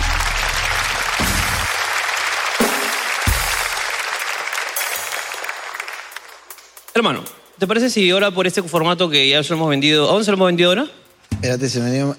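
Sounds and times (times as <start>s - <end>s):
audience applause: 0.0s - 6.8s
speech: 7.0s - 12.1s.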